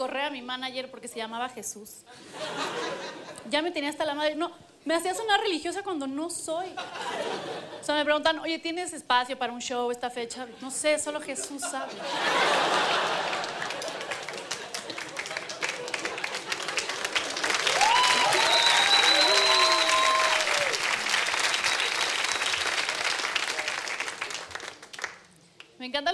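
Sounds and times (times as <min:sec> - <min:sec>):
speech: 0:00.1 - 0:13.2
laughter: 0:02.2 - 0:03.5, 0:06.8 - 0:07.8, 0:11.2 - 0:20.6
audience applause: 0:12.2 - 0:25.3.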